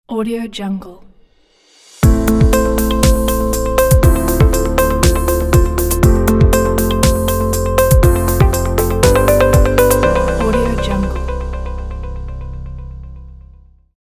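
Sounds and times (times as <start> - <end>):
logo intro jingle: 2.0 - 13.4.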